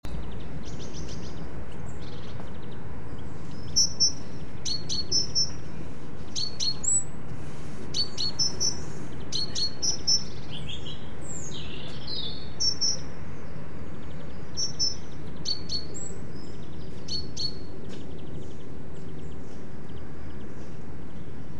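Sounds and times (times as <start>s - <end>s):
great tit calls: 0.1s - 7.2s, 7.9s - 21.5s.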